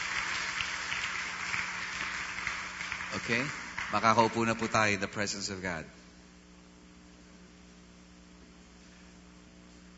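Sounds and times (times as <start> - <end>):
church congregation applause: 0.0 - 5.6
speech: 3.1 - 6.0.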